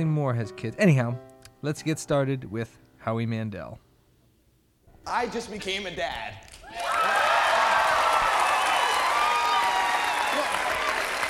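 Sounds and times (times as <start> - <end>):
speech: 0.0 - 3.8, 5.0 - 7.1
audience applause: 6.6 - 11.2.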